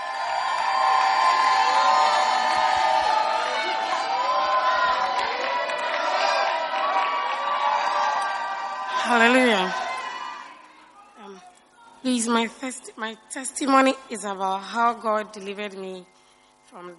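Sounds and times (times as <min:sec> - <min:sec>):
church congregation cheering for a testimony: 0:00.0 - 0:11.1
speech: 0:09.1 - 0:09.8, 0:12.0 - 0:16.9.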